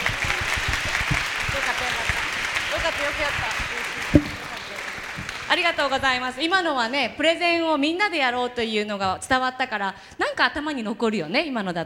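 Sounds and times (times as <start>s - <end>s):
audience applause: 0.0s - 5.6s
speech: 5.7s - 11.8s.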